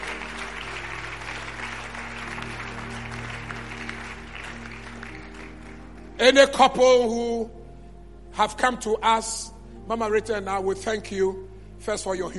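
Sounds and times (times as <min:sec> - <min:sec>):
audience clapping: 0:00.0 - 0:06.2
speech: 0:06.2 - 0:07.6, 0:08.4 - 0:12.3.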